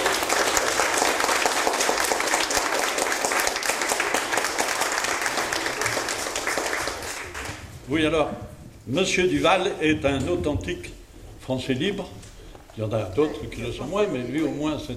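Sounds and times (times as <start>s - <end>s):
audience applauding: 0.0s - 7.6s
speech: 7.9s - 14.9s.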